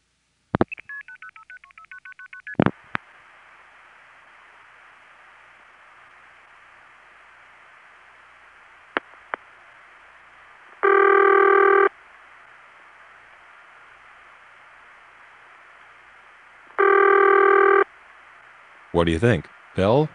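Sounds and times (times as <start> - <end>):
telephone dialing tones: 0.7 - 2.7, 10.8 - 11.9, 16.8 - 17.9
speech: 19.0 - 20.1.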